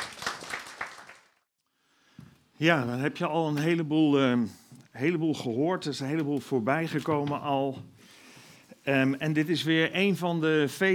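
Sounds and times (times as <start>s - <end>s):
audience applause: 0.0s - 1.4s
speech: 2.6s - 8.0s, 8.8s - 10.9s.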